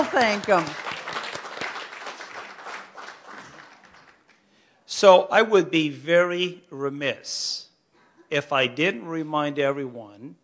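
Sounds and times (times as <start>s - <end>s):
speech: 0.0s - 0.8s, 5.0s - 7.6s, 8.3s - 10.4s
crowd applauding: 0.0s - 4.6s.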